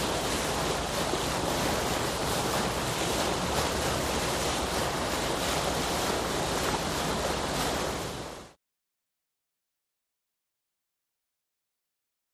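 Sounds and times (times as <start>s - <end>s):
bow wash of a large boat: 0.0s - 8.6s.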